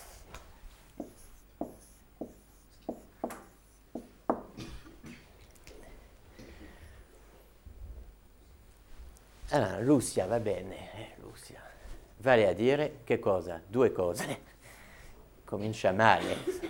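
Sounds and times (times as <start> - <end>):
pen writing a word by hand: 1.0 - 4.1
speech: 9.5 - 11.5, 12.2 - 14.5, 15.5 - 16.6.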